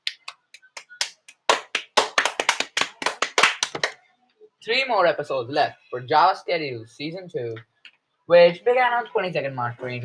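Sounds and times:
applause: 0:00.1 - 0:04.0
speech: 0:04.6 - 0:07.7, 0:08.3 - 0:10.0.

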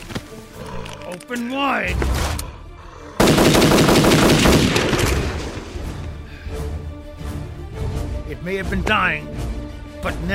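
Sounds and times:
speech: 0:00.4 - 0:02.4, 0:08.3 - 0:10.3
automatic gunfire: 0:03.2 - 0:05.3.

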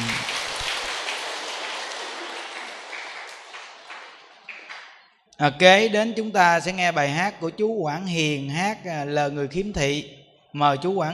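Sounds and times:
audience applause: 0:00.0 - 0:05.2
speech: 0:05.4 - 0:11.1.

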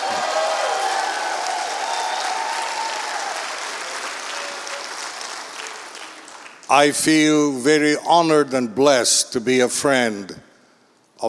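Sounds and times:
audience applause: 0:00.0 - 0:06.7
speech: 0:06.7 - 0:10.5.

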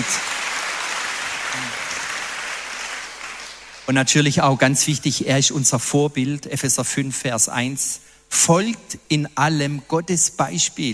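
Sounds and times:
audience applause: 0:00.0 - 0:03.9
speech: 0:03.9 - 0:10.9.

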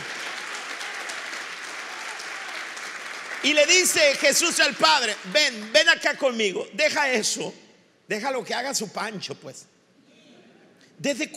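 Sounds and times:
audience applause: 0:00.0 - 0:06.4
speech: 0:03.4 - 0:09.8, 0:11.0 - 0:11.3.

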